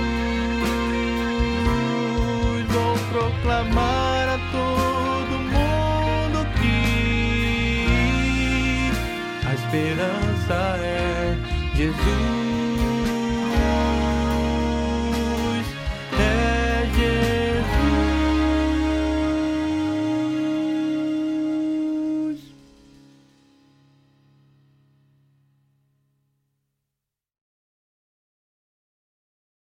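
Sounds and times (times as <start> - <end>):
baritone: 0.0 - 23.2.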